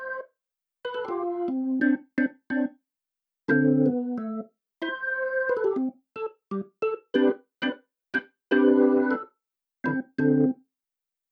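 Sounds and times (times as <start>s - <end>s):
organ: 0.9s - 2.8s, 3.5s - 9.3s, 9.9s - 10.6s.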